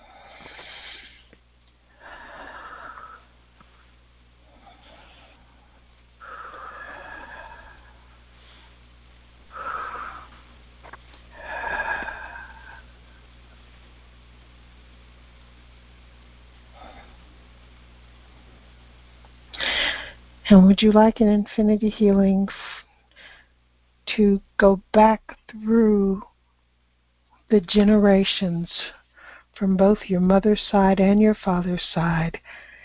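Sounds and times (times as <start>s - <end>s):
deep breathing during a guided meditation: 0.0s - 10.5s, 11.3s - 13.4s, 19.5s - 20.2s, 29.1s - 29.5s, 32.4s - 32.8s
speech: 20.5s - 22.6s, 24.2s - 26.3s, 27.5s - 29.0s, 29.6s - 32.6s.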